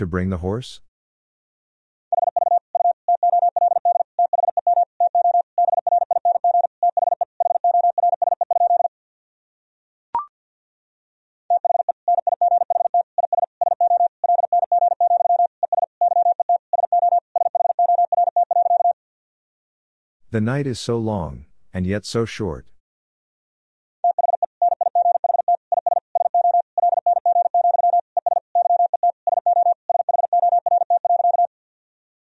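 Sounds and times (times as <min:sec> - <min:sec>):
speech: 0:00.0 - 0:00.9, 0:20.3 - 0:22.7
fast Morse code tone at 50 words per minute: 0:02.2 - 0:08.9, 0:11.5 - 0:19.0, 0:24.0 - 0:31.5.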